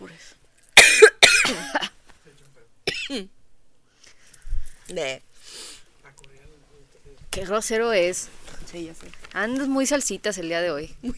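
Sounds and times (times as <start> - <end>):
two women coughing: 0.8 - 2.0, 2.9 - 3.3
speech: 5.0 - 5.3, 7.4 - 11.1.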